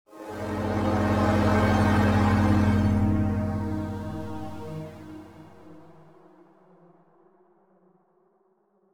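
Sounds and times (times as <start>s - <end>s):
electric wave sound: 0.3s - 5.8s.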